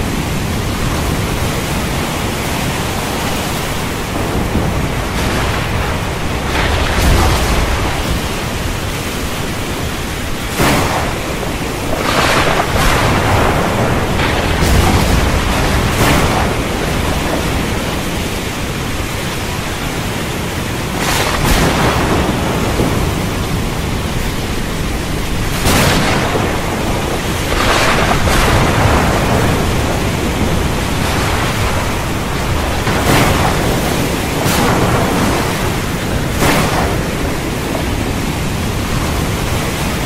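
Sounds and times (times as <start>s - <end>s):
heavy storm at sea: 0.0s - 40.0s.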